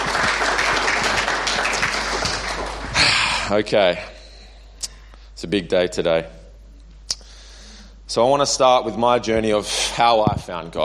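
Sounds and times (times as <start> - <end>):
audience applause: 0.0 - 3.4
speech: 3.5 - 4.1, 5.4 - 6.4, 8.1 - 10.8.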